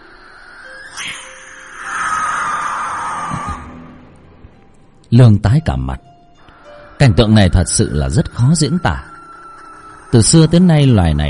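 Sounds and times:
barn owl screeching: 0:00.0 - 0:04.1, 0:06.5 - 0:11.2
speech: 0:05.1 - 0:06.1, 0:07.0 - 0:09.1, 0:10.1 - 0:11.2.

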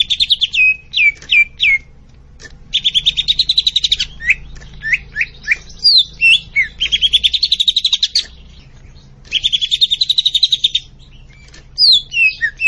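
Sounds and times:
greater green leafbird buzzy trills and whistles: 0:00.0 - 0:12.6.

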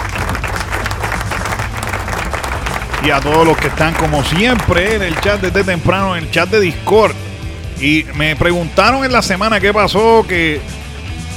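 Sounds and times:
studio applause: 0:00.0 - 0:06.8
crowd noise: 0:00.0 - 0:06.9
speech: 0:03.0 - 0:10.7.

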